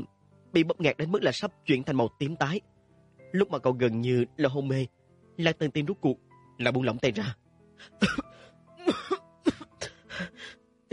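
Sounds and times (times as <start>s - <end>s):
speech: 0.5s - 2.7s, 3.3s - 9.0s
desperate dry coughing: 7.8s - 10.9s.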